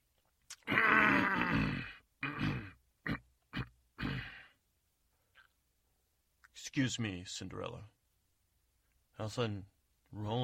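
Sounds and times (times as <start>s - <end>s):
person clearing throat: 0.6s - 4.5s
speech: 6.7s - 8.0s, 9.2s - 10.4s.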